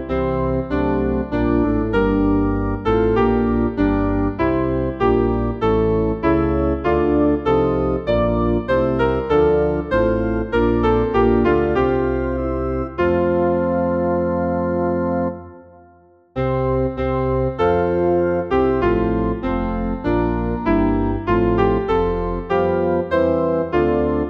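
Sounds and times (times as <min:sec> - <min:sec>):
piano playing a hymn: 0:00.0 - 0:24.2.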